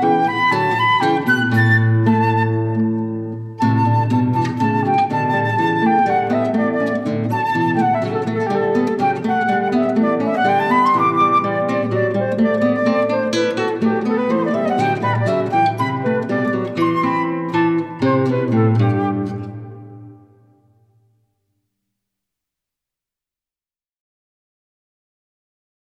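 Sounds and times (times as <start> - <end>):
flute: 0.0 - 20.7
guitar: 0.0 - 21.3.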